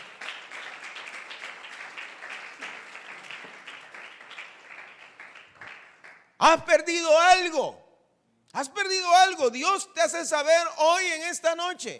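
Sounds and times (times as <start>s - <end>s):
audience applause: 0.0s - 6.2s
speech: 6.4s - 7.8s, 8.5s - 11.9s.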